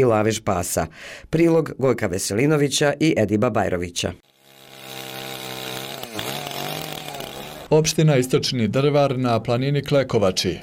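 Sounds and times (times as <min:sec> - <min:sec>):
speech: 0:00.0 - 0:04.3, 0:07.7 - 0:10.6
chainsaw engine running in a forest: 0:04.2 - 0:07.8.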